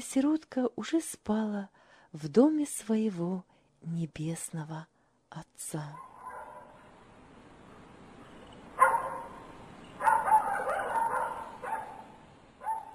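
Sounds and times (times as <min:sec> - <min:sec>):
speech: 0:00.0 - 0:06.1
dog barking loudly: 0:06.0 - 0:06.8, 0:08.8 - 0:12.9.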